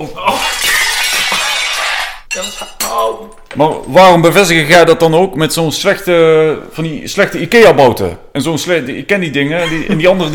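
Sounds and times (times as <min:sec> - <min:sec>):
speech: 0:00.0 - 0:00.4, 0:02.4 - 0:10.3
rack of hanging pans crashing down: 0:00.4 - 0:03.0.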